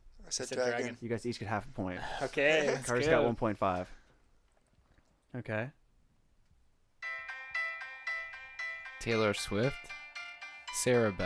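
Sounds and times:
speech: 0.3 - 4.0, 5.3 - 5.8, 9.0 - 10.0, 10.8 - 11.2
phone ringtone playing a song: 7.0 - 11.2.

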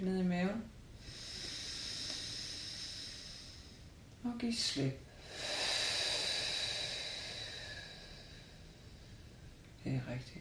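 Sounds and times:
speech: 0.0 - 0.8, 4.3 - 5.5, 9.9 - 10.4
deep slow breath in through the nose during a relaxation exercise: 1.0 - 3.9, 5.1 - 9.6.

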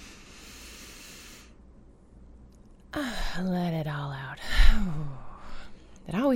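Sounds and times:
slow deep breath in through the nose during a guided breathing exercise: 0.0 - 1.6
speech: 3.4 - 5.1, 6.1 - 6.3.

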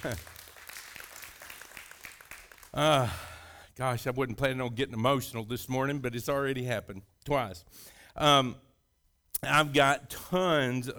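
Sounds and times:
speech: 0.0 - 0.3, 2.8 - 8.7, 9.4 - 10.9
audience hand clapping: 0.0 - 3.2.

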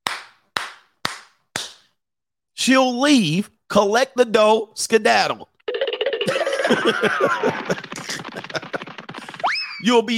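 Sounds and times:
hand clapping: 0.0 - 2.0, 7.3 - 9.5
speech: 2.6 - 5.5, 6.7 - 8.7, 9.8 - 10.1
laughter: 6.2 - 9.4.

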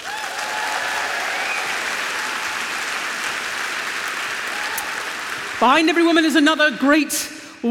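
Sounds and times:
audience applause: 0.0 - 5.6
speech: 5.6 - 7.6.

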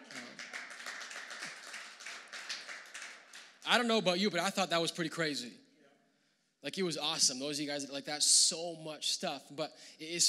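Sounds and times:
audience clapping: 0.0 - 4.0
speech: 3.7 - 5.6, 6.6 - 10.2.

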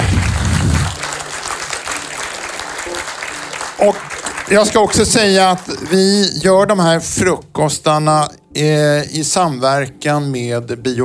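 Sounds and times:
applause: 0.0 - 6.3
speech: 3.8 - 11.0.

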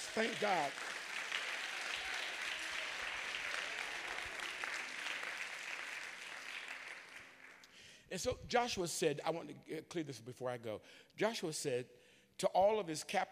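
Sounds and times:
audience clapping hands: 0.0 - 7.8
speech: 0.2 - 0.9, 8.1 - 13.2.

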